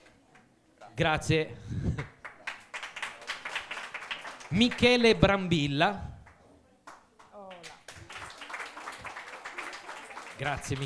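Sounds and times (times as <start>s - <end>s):
speech: 1.0s - 2.1s, 4.5s - 6.1s, 10.4s - 10.8s
audience applause: 2.2s - 4.9s, 7.5s - 10.8s.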